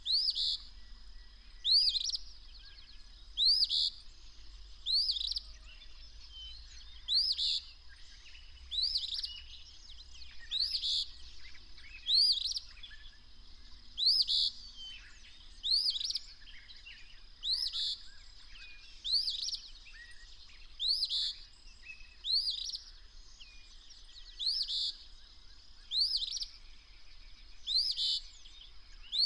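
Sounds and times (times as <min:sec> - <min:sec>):
bird song with high twittering phrases: 0:00.0 - 0:29.2.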